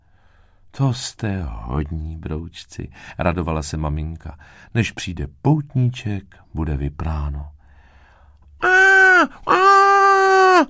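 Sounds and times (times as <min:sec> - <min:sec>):
speech: 0:00.8 - 0:07.6, 0:08.6 - 0:09.6
high-pitched screams: 0:08.6 - 0:10.6.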